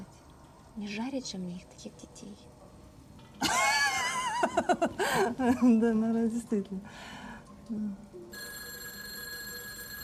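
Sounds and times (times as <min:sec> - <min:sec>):
speech: 0:00.8 - 0:02.6, 0:04.5 - 0:08.1
laughter: 0:03.4 - 0:05.8
telephone ringing: 0:08.3 - 0:10.0.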